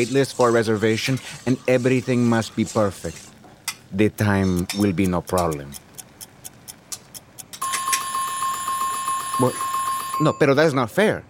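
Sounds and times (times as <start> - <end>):
speech: 0.0 - 3.3, 3.9 - 5.8, 9.4 - 11.2
kitchen timer ding: 7.6 - 10.8.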